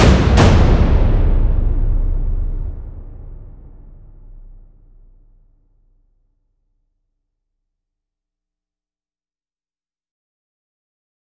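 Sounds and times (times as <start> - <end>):
drums: 0.0 - 5.4
percussion: 0.0 - 5.4.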